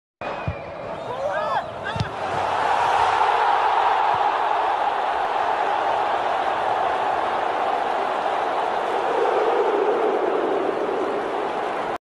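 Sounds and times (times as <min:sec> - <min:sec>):
crowd celebrating goal: 0:00.2 - 0:12.0.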